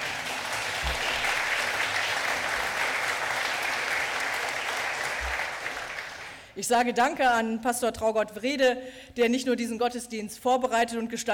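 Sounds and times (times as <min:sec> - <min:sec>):
audience applause: 0:00.0 - 0:06.4
speech: 0:06.6 - 0:11.3.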